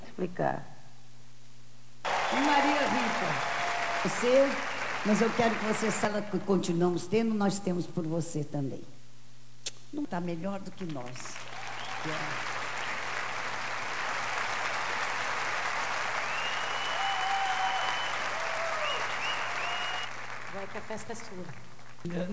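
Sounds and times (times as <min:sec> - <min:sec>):
speech: 0:00.2 - 0:00.7, 0:02.3 - 0:09.0, 0:09.9 - 0:12.5, 0:20.9 - 0:22.3
audience applause: 0:02.0 - 0:06.3, 0:11.2 - 0:22.0.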